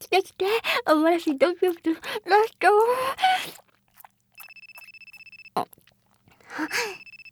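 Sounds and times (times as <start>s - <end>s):
speech: 0.1s - 3.6s
telephone ringing: 4.4s - 5.6s, 6.7s - 7.3s.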